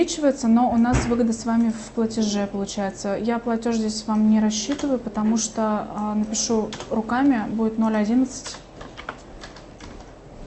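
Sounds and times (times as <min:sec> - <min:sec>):
speech: 0:00.0 - 0:08.6
typing on a computer keyboard during a mortgage refinance calculation: 0:04.6 - 0:05.0, 0:06.3 - 0:07.0, 0:08.3 - 0:10.1.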